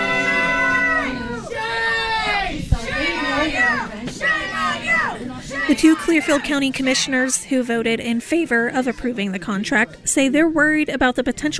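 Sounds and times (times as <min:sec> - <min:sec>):
crowd shouting angrily in a meeting room: 0:00.0 - 0:07.5
speech: 0:05.7 - 0:11.5.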